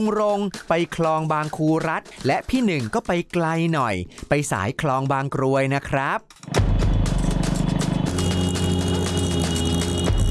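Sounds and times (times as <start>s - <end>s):
speech: 0.0s - 6.5s
horn honked to call customers: 6.8s - 10.2s
rhythmic chugging engine: 6.8s - 10.2s.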